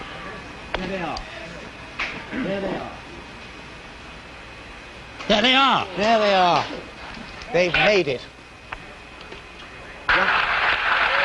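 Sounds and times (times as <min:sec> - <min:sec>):
speech: 0:00.8 - 0:01.4, 0:02.3 - 0:03.0, 0:05.3 - 0:06.9, 0:07.5 - 0:08.4
loud applause in Mission Control: 0:10.1 - 0:11.2.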